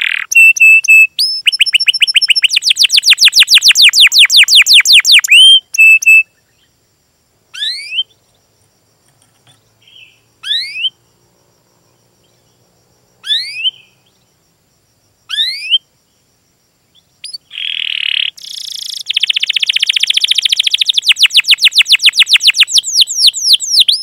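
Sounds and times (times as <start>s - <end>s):
canary singing vigorously with full repertoire: 0.0s - 6.3s, 9.5s - 11.0s, 13.2s - 14.1s, 17.2s - 24.0s.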